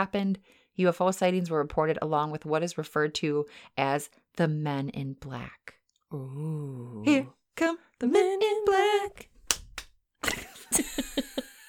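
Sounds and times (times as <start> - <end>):
speech: 0.0 - 9.3
hand claps: 9.2 - 10.4
laughter: 10.2 - 11.6.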